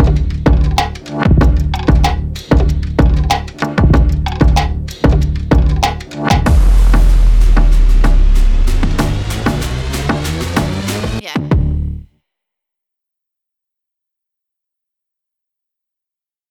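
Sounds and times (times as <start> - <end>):
breakbeat: 0.0 - 11.8.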